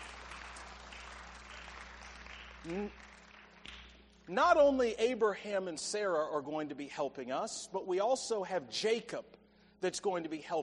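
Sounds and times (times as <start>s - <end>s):
audience applause: 0.0s - 3.9s
person whooping: 2.6s - 3.0s
speech: 2.6s - 3.1s, 4.3s - 10.6s.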